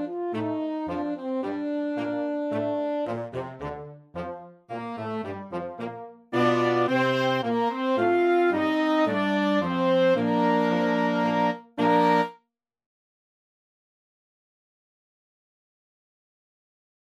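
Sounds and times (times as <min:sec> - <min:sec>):
wind band playing a concert march: 0:00.0 - 0:12.3.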